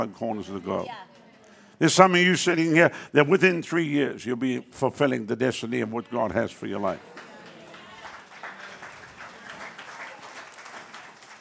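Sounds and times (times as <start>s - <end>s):
speech: 0.0s - 1.2s, 1.8s - 7.3s
church congregation clapping along: 6.7s - 11.3s
crowd murmur and voices: 6.9s - 11.0s.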